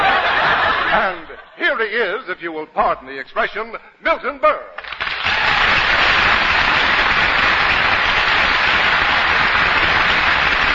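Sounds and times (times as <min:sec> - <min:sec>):
laughter: 0:00.0 - 0:01.6
speech: 0:01.8 - 0:05.8
studio audience applause: 0:04.8 - 0:10.7.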